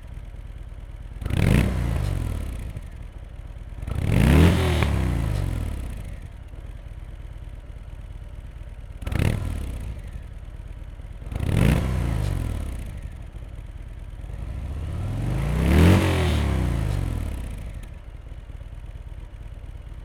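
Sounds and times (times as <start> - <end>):
Harley-Davidson Fat Bob 107 engine revving: 1.2 - 3.1, 3.8 - 6.4, 9.0 - 10.3, 11.2 - 13.4, 14.1 - 18.0.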